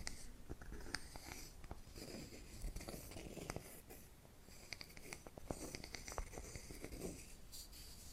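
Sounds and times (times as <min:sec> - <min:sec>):
soft tapping and scratching: 0:00.0 - 0:08.0.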